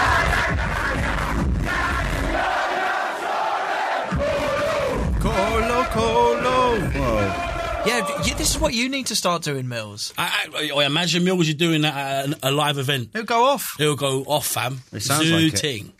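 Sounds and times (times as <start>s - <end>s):
live gig crowd roaring on a low-quality phone recording: 0.0s - 8.7s
shouting and chanting voices: 0.0s - 8.7s
speech: 7.3s - 15.9s.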